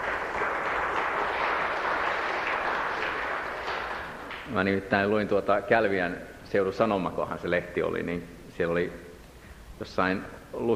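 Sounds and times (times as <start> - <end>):
audience applause: 0.0 - 4.5
speech: 4.5 - 9.0, 9.8 - 10.7.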